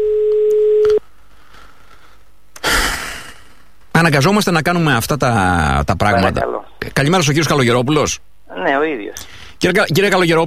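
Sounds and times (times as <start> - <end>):
telephone tone while calling a mobile phone: 0.0 - 1.0
short burst of noise: 2.6 - 3.8
speech: 4.0 - 10.4.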